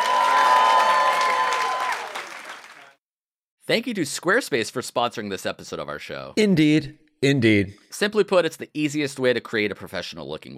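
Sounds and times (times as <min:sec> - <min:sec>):
live audience round of applause: 0:00.0 - 0:03.0
speech: 0:03.7 - 0:10.5.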